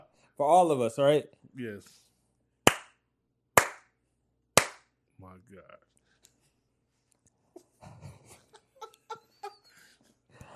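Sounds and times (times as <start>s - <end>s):
speech: 0.4s - 2.1s, 5.2s - 5.9s
hand claps: 2.7s - 3.0s, 3.6s - 4.0s, 4.6s - 4.9s
laughter: 7.6s - 10.1s.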